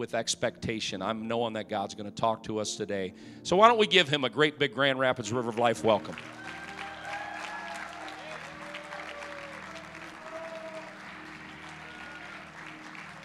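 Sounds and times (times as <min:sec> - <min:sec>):
speech: 0:00.0 - 0:06.6
audience applauding and clapping: 0:05.8 - 0:13.2
crowd voices and cheers: 0:06.1 - 0:13.2.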